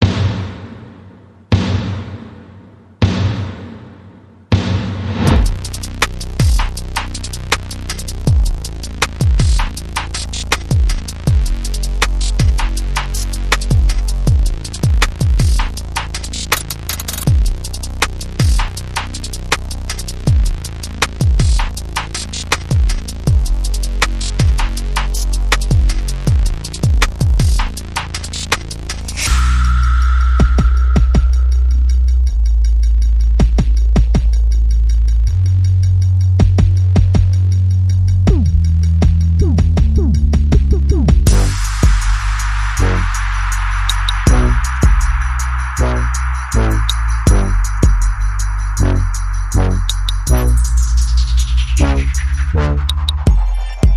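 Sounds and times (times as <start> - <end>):
percussion: 0.0 - 53.9
bass: 5.1 - 53.9
sound effects: 29.1 - 32.3, 40.9 - 53.9.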